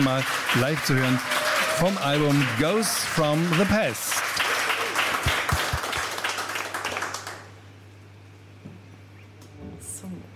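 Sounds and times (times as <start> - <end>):
speech: 0.0 - 4.4
live radio studio audience applause: 0.0 - 7.7.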